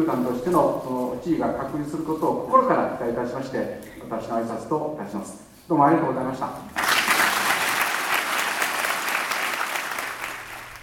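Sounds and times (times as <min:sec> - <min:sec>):
speech: 0:00.0 - 0:06.9
audience applause: 0:06.8 - 0:10.8.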